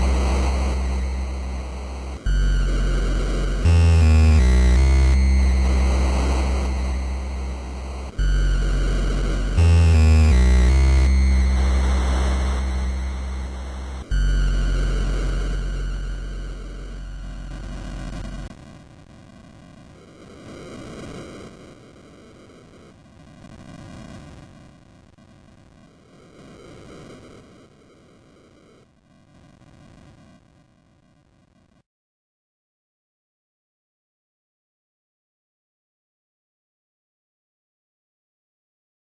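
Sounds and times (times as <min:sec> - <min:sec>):
8-bit root tone: 0:00.0 - 0:18.5.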